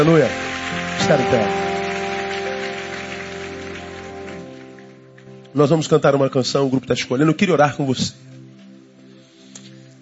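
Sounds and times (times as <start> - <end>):
speech: 0.0 - 0.4, 1.1 - 1.6, 5.5 - 8.3
audience applauding: 0.0 - 5.4.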